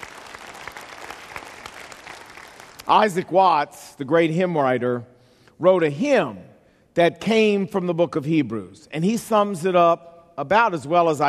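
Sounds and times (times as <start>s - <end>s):
audience applause: 0.0s - 2.9s
speech: 2.9s - 11.2s.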